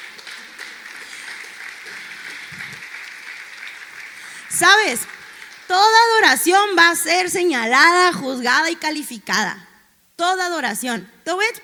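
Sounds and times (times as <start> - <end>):
audience clapping: 0.0 - 6.5
speech: 4.6 - 5.1, 5.7 - 11.6.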